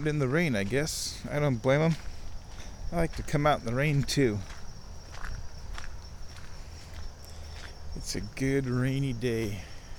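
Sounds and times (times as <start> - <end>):
speech: 0.0 - 2.1, 2.9 - 4.6, 8.0 - 9.7
footsteps walking outdoors: 0.0 - 9.9.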